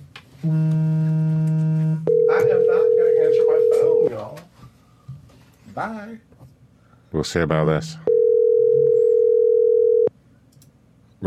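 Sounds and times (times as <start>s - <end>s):
speech: 0.4s - 0.8s, 5.8s - 6.4s, 7.1s - 8.1s
phone electronic tone during a livestream: 0.4s - 4.2s, 8.1s - 10.1s.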